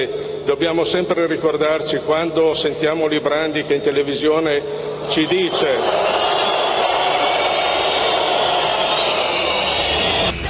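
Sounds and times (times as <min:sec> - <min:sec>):
speech: 0:00.0 - 0:06.2
audience whistling in disapproval: 0:04.9 - 0:10.4.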